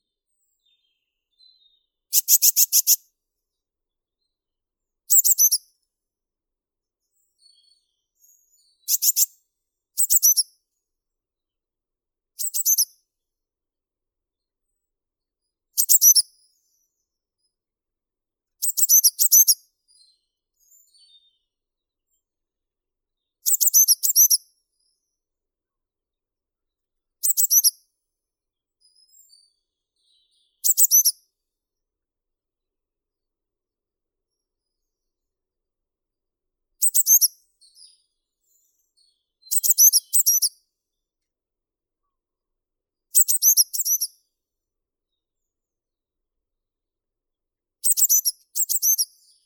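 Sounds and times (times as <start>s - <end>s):
blue tit Cyanistes caeruleus: 0.3s - 3.1s, 5.1s - 5.8s, 7.1s - 9.4s, 10.0s - 10.7s, 12.4s - 13.1s, 15.8s - 17.0s, 18.6s - 21.5s, 23.2s - 25.1s, 27.2s - 27.9s, 28.8s - 31.3s, 36.8s - 40.7s, 43.1s - 44.3s, 47.8s - 49.4s.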